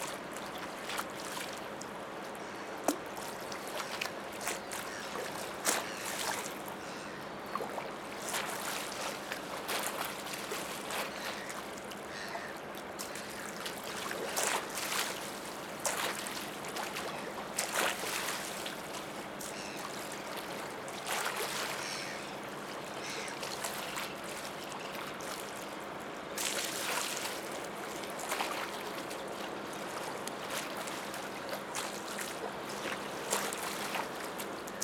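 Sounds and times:
low engine-like hum at the Lieutenant Schmidt Embankment: 0.0s - 34.8s
water lapping at the Lieutenant Schmidt Embankment, Petersburg, Russia: 0.0s - 34.8s.

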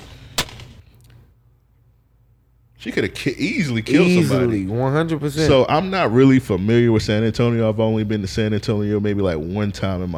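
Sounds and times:
gunshot from a played video of a woman firing a gun: 0.0s - 0.8s
laughter: 2.8s - 10.0s
speech: 2.8s - 10.1s.

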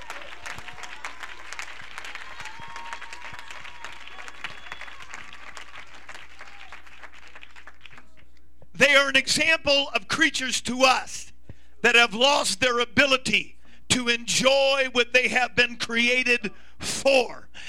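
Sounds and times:
audience clapping hands: 0.0s - 8.4s
speech: 9.1s - 17.6s.

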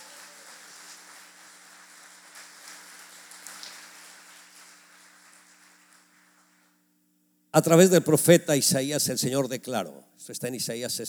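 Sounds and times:
audience applause: 0.0s - 6.8s
speech: 7.6s - 11.0s.

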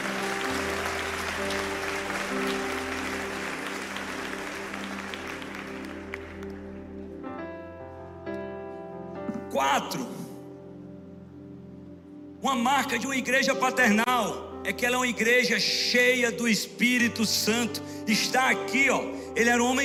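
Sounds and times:
audience clapping: 0.0s - 7.2s
sustained organ or keyboard chords: 0.0s - 19.8s
speech: 9.6s - 10.2s, 12.5s - 19.8s.

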